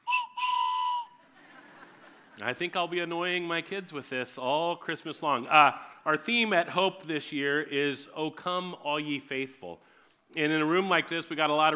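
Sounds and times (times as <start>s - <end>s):
train whistle blasts: 0.0s - 1.2s
laughter: 1.2s - 2.4s
speech: 2.4s - 11.7s.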